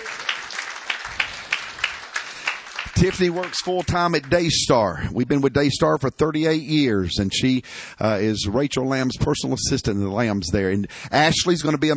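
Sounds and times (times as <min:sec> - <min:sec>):
church congregation applauding to welcome a couple: 0:00.0 - 0:04.9
speech: 0:03.0 - 0:11.9.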